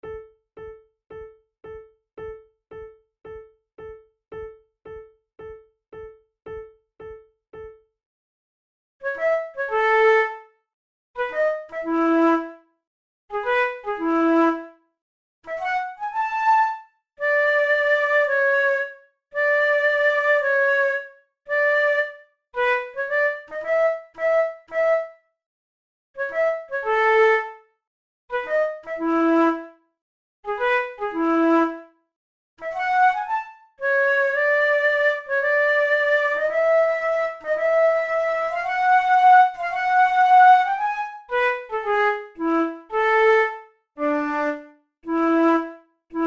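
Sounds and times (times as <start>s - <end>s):
flute method exercise: 9.0s - 10.5s, 11.2s - 12.6s, 13.3s - 14.8s, 15.4s - 25.3s, 26.2s - 27.6s, 28.3s - 29.8s, 30.5s - 31.9s, 32.6s - 46.2s.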